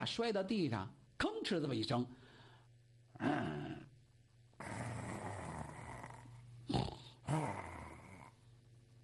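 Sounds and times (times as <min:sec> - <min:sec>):
speech: 0:00.0 - 0:02.3, 0:03.2 - 0:03.6
man's voice imitating snoring in a Chinese comic storytelling performance: 0:03.2 - 0:03.9, 0:04.6 - 0:08.4.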